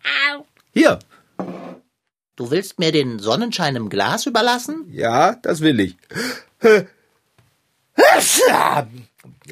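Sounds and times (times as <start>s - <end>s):
speech: 0.8s - 1.1s, 2.4s - 7.0s, 8.0s - 9.5s
sneeze: 8.0s - 8.8s.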